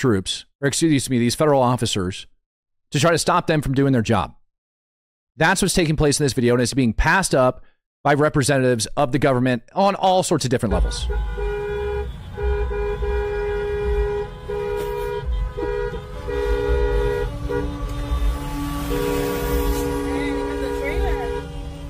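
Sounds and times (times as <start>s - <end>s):
speech: 0.0s - 2.3s, 2.9s - 4.4s, 5.4s - 11.5s
semi-truck air horn blasts: 10.7s - 21.8s
traffic rumble: 10.7s - 21.8s.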